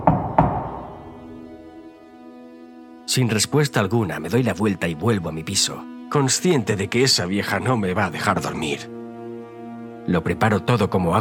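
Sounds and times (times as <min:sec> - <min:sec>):
knocks on a door: 0:00.0 - 0:01.1
speech: 0:03.1 - 0:09.0, 0:10.1 - 0:11.1.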